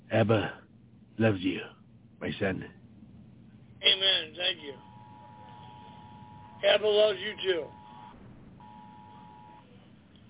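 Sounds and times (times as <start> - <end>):
speech: 0.1 - 0.6, 1.2 - 2.8, 6.6 - 7.8
cell phone warning alert: 4.7 - 9.6.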